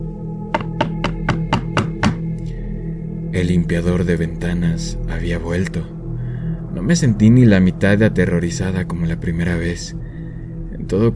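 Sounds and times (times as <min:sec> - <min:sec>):
knocking on a balcony door: 0:00.6 - 0:02.3
speech: 0:03.3 - 0:06.0, 0:06.8 - 0:10.1, 0:10.9 - 0:11.1.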